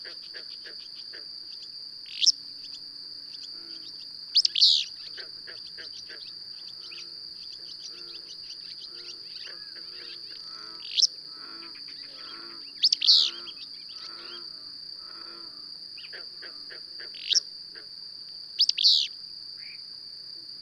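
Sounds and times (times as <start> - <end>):
bird chirps: 1.6 - 11.1, 11.9 - 14.4, 18.6 - 19.1.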